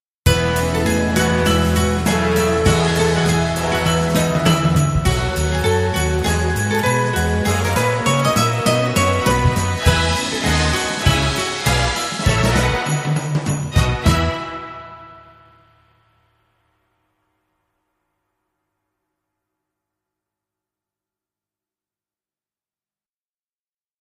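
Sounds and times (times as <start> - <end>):
jazz Christmas carol: 0.3 - 15.7.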